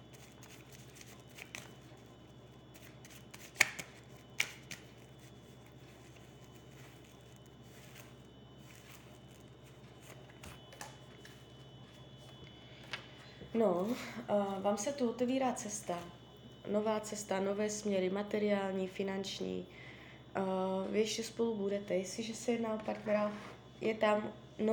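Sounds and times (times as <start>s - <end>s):
faint steady hum: 0.0s - 24.7s
tarot cards being shuffled: 0.1s - 2.0s, 2.7s - 11.4s
tarot cards landing: 2.8s - 4.9s
speech: 13.6s - 24.7s.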